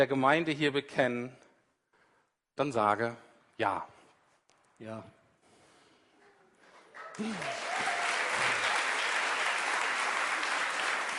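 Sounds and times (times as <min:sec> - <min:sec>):
speech: 0:00.0 - 0:01.4, 0:02.6 - 0:03.9, 0:04.8 - 0:05.2, 0:07.2 - 0:07.7
audience applause after a baptism: 0:07.0 - 0:11.1
people cheering: 0:07.0 - 0:11.1.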